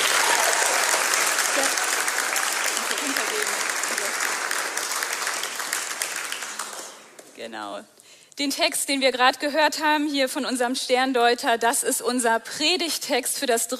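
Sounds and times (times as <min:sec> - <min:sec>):
big audience applause: 0:00.0 - 0:07.4
speech: 0:07.4 - 0:13.7.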